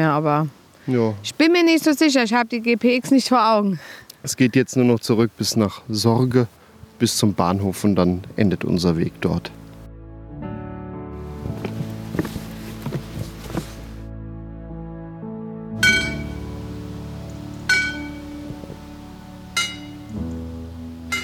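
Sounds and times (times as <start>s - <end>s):
speech: 0.0s - 9.6s
church bells ringing in Sorge: 15.8s - 16.5s, 17.7s - 18.4s, 19.5s - 20.1s.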